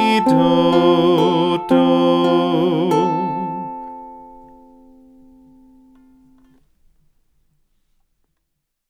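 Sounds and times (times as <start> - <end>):
ukulele tune: 0.0 - 6.6.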